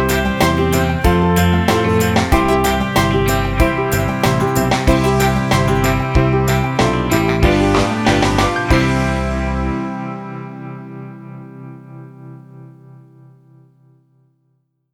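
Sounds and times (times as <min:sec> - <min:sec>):
blues harmonica playing: 0:00.0 - 0:09.9.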